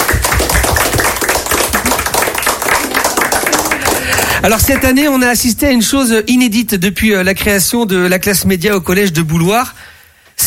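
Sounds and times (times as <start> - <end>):
pupils applauding themselves: 0.0 - 5.5
speech: 4.4 - 9.9.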